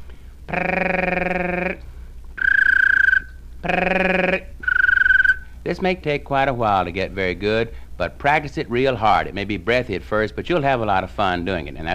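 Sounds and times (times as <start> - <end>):
speech: 0.5 - 1.2, 5.7 - 11.9
person making buzzy rolling voiced trill: 0.5 - 1.8, 2.4 - 5.4
person whistling a trill imitating a little bird: 2.4 - 3.4, 4.6 - 5.5.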